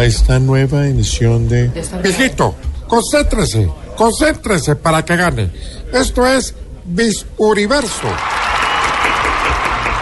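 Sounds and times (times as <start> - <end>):
speech: 0.0 - 8.4
audience applause: 8.1 - 10.0.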